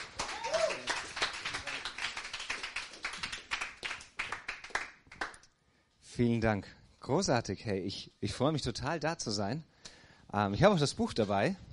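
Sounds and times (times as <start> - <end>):
warm audience applause: 0.0 - 5.4
speech: 6.2 - 9.7, 10.3 - 11.7.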